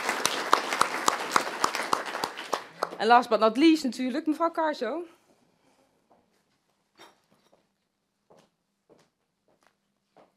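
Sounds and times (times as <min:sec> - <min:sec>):
applause: 0:00.0 - 0:03.3
speech: 0:03.0 - 0:05.2.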